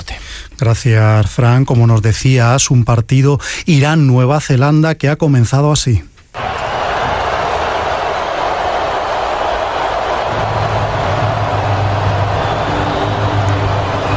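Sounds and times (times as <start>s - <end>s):
speech: 0.6s - 6.1s
stadium crowd booing and whistling at anthem: 6.4s - 14.1s.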